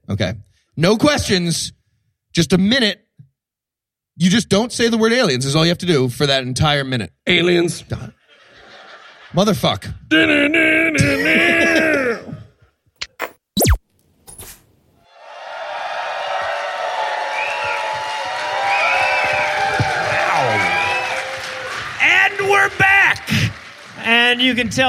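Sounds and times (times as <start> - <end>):
speech: 0.1 - 1.8, 2.4 - 3.0, 4.2 - 8.2, 9.3 - 12.3, 24.3 - 24.8
laughter: 8.1 - 9.8, 11.0 - 12.3
audience applauding and cheering: 15.0 - 24.8.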